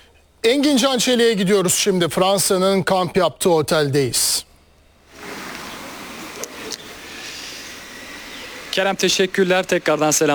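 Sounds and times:
speech: 0.4 - 4.5, 8.8 - 10.3
France national team bus doors opening with pneumatic hiss: 5.0 - 9.7
short sharp clicks: 6.3 - 7.4.

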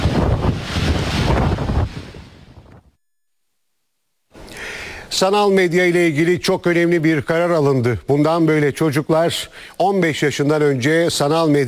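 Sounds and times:
tornado winds on Sicily buffeting the microphone: 0.0 - 2.9
speech: 5.1 - 11.6.

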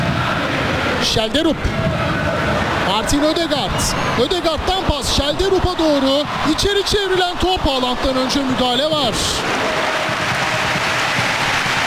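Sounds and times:
stadium crowd noise: 0.0 - 11.8
speech: 1.0 - 2.2, 2.9 - 9.8
football fans applauding in a stadium: 2.0 - 11.8.

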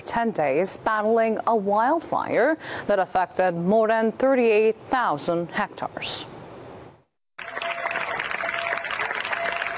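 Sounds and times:
speech: 0.1 - 6.3
residents applauding emergency crews: 7.4 - 9.7.

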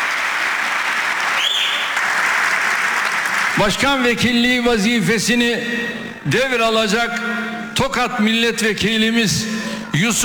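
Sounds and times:
long applause in parliament: 0.0 - 4.0
speech: 3.6 - 10.2.

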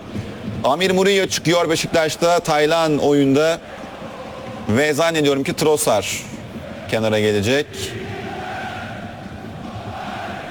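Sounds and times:
stadium crowd at Dolmabahçe roaring and applauding a substitution: 0.0 - 10.4
speech: 0.6 - 3.8, 4.7 - 6.3, 6.9 - 8.0.

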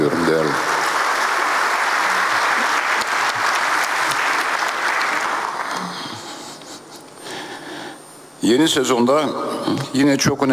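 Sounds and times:
audience applause: 0.0 - 6.3
speech: 0.1 - 0.7, 8.5 - 10.5.

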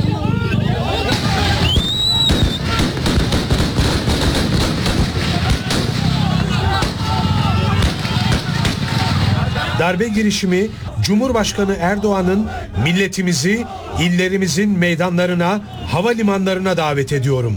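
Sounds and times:
laughter: 0.0 - 14.3
gunfire: 1.1 - 9.8
speech: 9.8 - 17.5.

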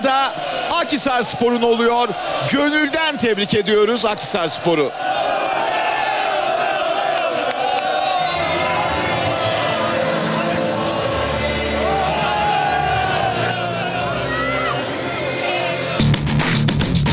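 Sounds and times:
commentator talking: 0.0 - 4.9
stadium crowd at the Turkish Super Cup acclaiming Akhisarspor: 0.0 - 17.0
speech: 0.8 - 5.4.

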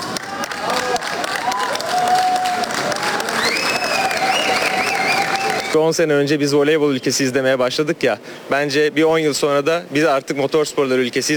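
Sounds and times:
crowd clapping to greet a pilot at an airport: 0.0 - 5.8
speech: 5.8 - 11.3.

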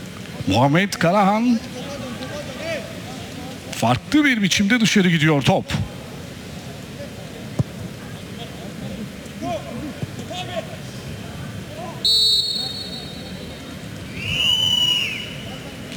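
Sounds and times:
constant wash: 0.0 - 15.9
commentator talking: 0.4 - 2.8, 3.7 - 5.9
speech: 0.5 - 1.8, 3.8 - 5.9
referee's whistle during a football match: 12.0 - 15.8.

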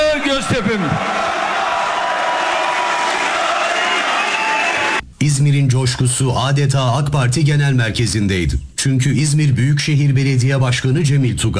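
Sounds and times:
crowd cheering in an AK Party rally hall: 0.0 - 5.0
speech: 5.2 - 11.5.

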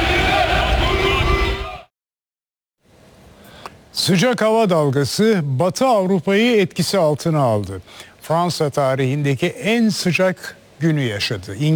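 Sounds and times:
football fans chanting at the Turkish national team's first training session in Los Angeles: 0.0 - 1.9
faint noise: 2.8 - 11.7
speech: 4.0 - 11.7.

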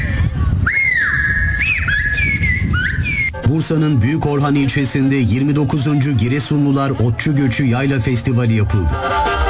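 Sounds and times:
whistled bird language calls: 0.0 - 3.5
speech: 3.5 - 9.4.

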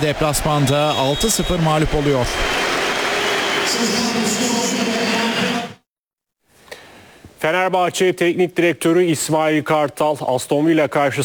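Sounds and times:
speech: 0.0 - 2.8, 3.7 - 5.8, 7.4 - 11.2
referee's final whistle: 0.1 - 4.4.

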